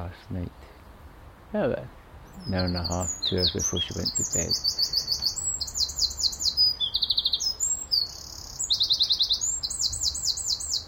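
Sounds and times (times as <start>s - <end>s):
speech: 0.0s - 0.7s, 1.5s - 5.0s
wren singing: 2.2s - 10.8s.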